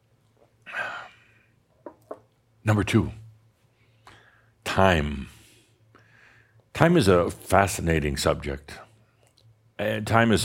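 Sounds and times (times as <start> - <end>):
speech: 2.6 - 3.2, 4.8 - 5.3, 6.8 - 8.8, 9.8 - 10.4
deep breath: 3.8 - 4.6, 5.4 - 6.6.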